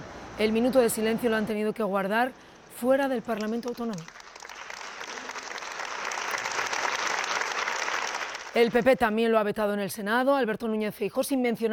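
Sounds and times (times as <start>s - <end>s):
speech: 0.4s - 4.2s, 8.6s - 11.7s
applause in a council chamber: 2.7s - 9.0s.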